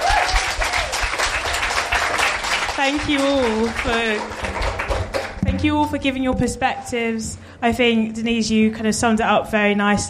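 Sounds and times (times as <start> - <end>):
audience applause: 0.0 - 5.4
speech: 2.8 - 4.6, 5.6 - 10.0.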